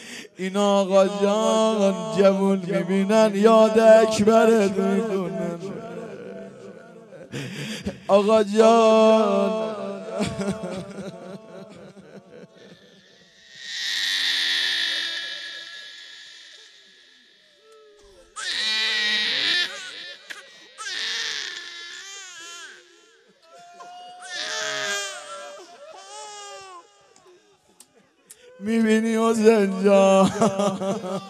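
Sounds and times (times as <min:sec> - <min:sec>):
speech: 0:00.4 - 0:05.6, 0:08.1 - 0:10.9, 0:29.8 - 0:31.2
laughter: 0:09.3 - 0:12.9, 0:29.6 - 0:31.2
infant crying: 0:13.6 - 0:16.7, 0:17.6 - 0:26.8.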